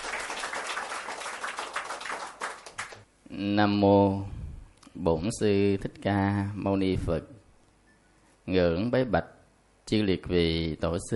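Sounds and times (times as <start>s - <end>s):
audience applause: 0.0s - 3.0s
speech: 3.4s - 4.4s, 5.0s - 7.3s, 8.5s - 11.1s.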